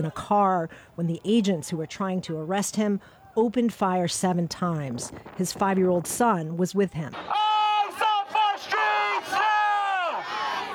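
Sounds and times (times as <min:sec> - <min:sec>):
speech: 0:00.0 - 0:07.4
street protest crowd chanting in unison: 0:00.0 - 0:10.7.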